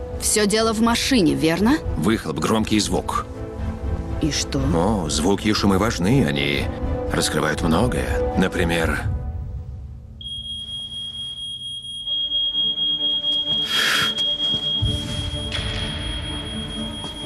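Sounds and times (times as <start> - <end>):
speech: 0.2 - 3.3, 4.2 - 9.1
fire alarm beeping: 10.2 - 17.2.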